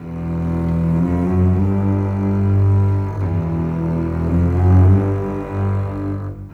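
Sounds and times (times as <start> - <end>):
cinematic bass cello: 0.0 - 6.5.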